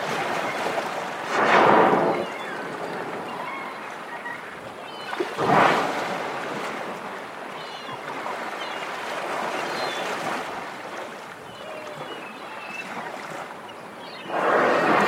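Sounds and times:
humpback whale song with tonal moans and upswept whoops: 0.0 - 15.0.

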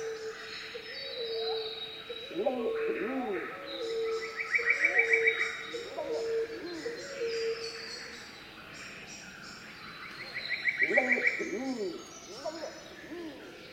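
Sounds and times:
Pacific emerald dove singing in tropical rainforest: 0.0 - 7.8, 10.7 - 13.7.

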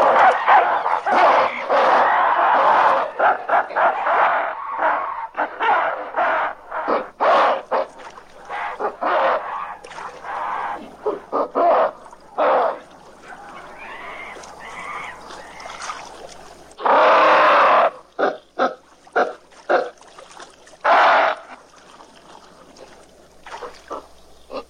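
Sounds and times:
apes screaming and barking: 0.0 - 15.9, 16.8 - 18.2, 20.8 - 21.6.

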